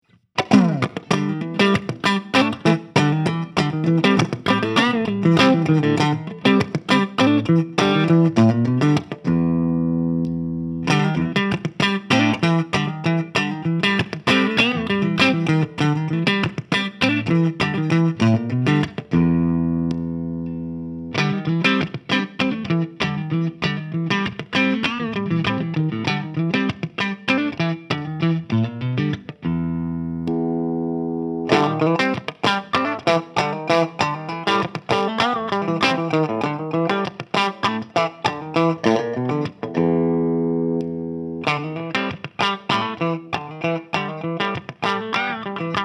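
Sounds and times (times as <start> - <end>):
Epiphone clean electric guitar through JC amp: 0.4 - 45.8.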